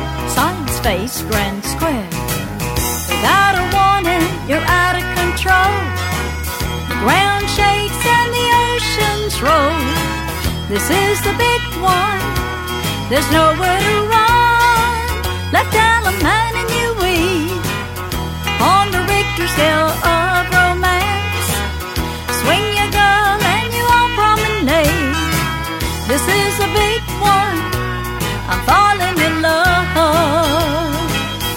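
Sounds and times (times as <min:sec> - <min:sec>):
vocals: 0:00.2 - 0:06.3, 0:06.9 - 0:31.3.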